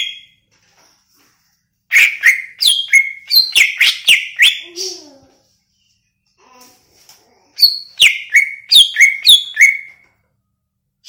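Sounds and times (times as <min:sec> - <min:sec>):
greater green leafbird whistling song: 0:01.9 - 0:04.8, 0:07.6 - 0:10.0.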